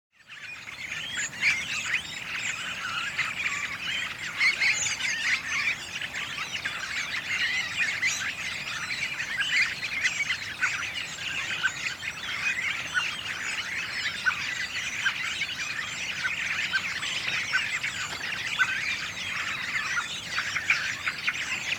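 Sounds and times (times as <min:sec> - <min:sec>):
redwing song: 0:00.2 - 0:21.7.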